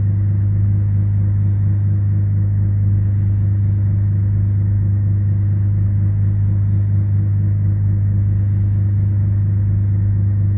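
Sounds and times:
low fixed fan: 0.0 - 10.5.

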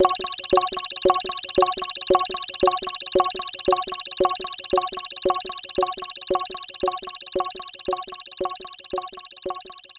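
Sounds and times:
music: 0.0 - 9.9.

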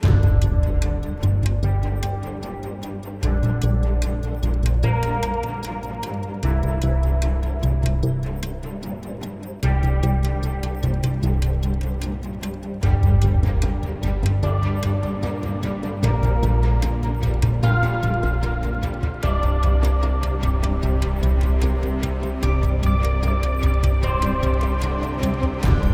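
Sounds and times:
percussion loop at 75 BPM: 0.0 - 25.9.

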